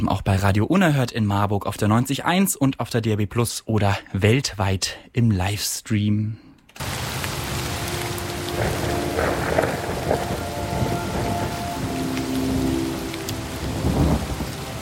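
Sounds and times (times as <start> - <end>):
speech: 0.0 - 7.0
rain pattering in a radio jingle: 6.8 - 14.8
thunder rumbling in a radio jingle: 6.8 - 14.8
sustained tones: 7.5 - 14.8.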